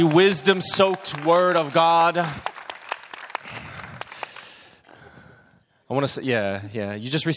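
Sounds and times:
speech: 0:00.0 - 0:02.5, 0:05.9 - 0:07.3
crowd clapping: 0:00.0 - 0:04.8.

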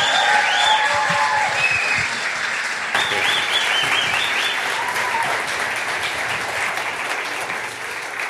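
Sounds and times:
church audience cheering and shouting: 0:00.0 - 0:02.2, 0:03.0 - 0:05.5
church audience applauding a guest: 0:00.0 - 0:08.2.

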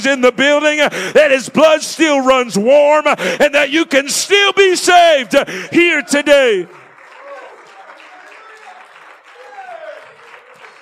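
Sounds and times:
speech: 0:00.0 - 0:06.8
audience clapping hands: 0:05.8 - 0:10.8.

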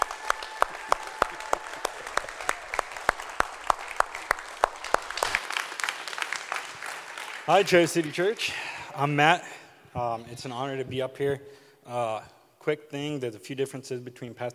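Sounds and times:
audience applause: 0:00.0 - 0:09.1
speech: 0:07.5 - 0:14.5.

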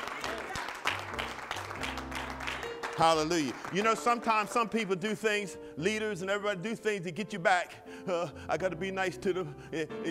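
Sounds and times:
congregation clapping hands in worship: 0:00.0 - 0:05.3
speech: 0:03.0 - 0:10.1.

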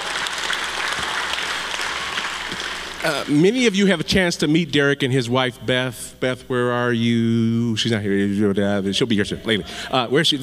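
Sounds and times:
audience applause: 0:00.0 - 0:03.4
speech: 0:03.0 - 0:10.4.

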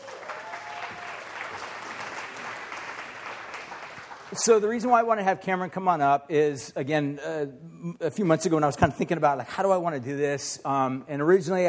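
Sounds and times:
audience applause: 0:00.0 - 0:04.5
speech: 0:04.3 - 0:11.6.

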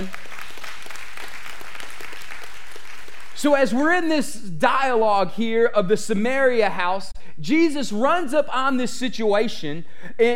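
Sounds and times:
speech: 0:00.0 - 0:00.2, 0:03.4 - 0:10.3
audience clapping hands in praise: 0:00.0 - 0:03.9.

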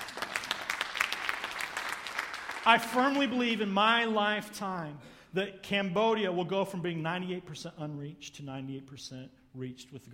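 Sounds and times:
audience clapping: 0:00.0 - 0:04.2
speech: 0:02.6 - 0:10.1.

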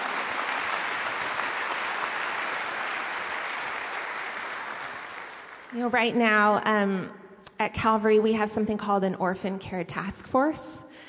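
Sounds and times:
audience clapping: 0:00.0 - 0:06.1
speech: 0:05.7 - 0:11.0.

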